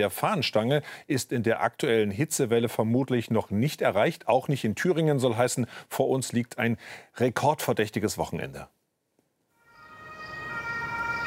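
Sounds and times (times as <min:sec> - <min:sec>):
speech: 0:00.0 - 0:08.8
ambulance siren arriving at a hospital emergency department: 0:09.6 - 0:11.2.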